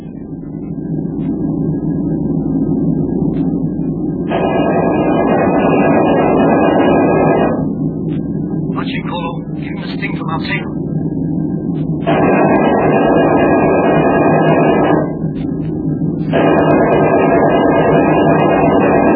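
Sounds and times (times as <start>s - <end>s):
diving airplane engine roaring: 0.0s - 19.1s.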